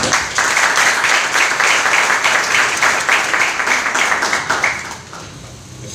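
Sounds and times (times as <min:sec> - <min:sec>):
audience applause and cheering: 0:00.0 - 0:05.3.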